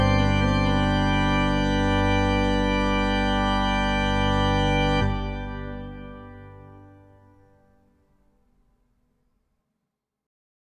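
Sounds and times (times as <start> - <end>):
organ: 0.0 - 7.7.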